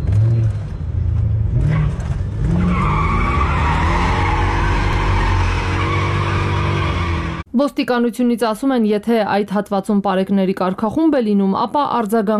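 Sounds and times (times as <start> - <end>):
car tires screeching through city streets at night: 0.0 - 7.4
roaring engine of cars speeding at night: 0.0 - 7.5
speech: 7.6 - 12.3.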